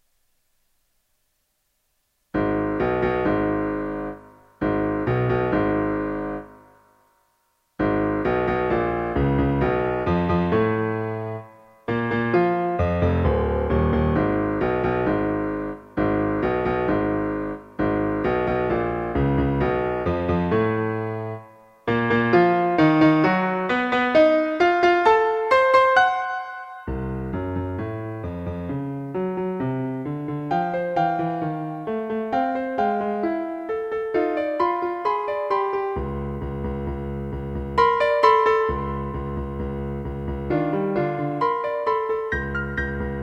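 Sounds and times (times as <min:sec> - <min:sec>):
piano sonata: 0:02.3 - 0:43.2.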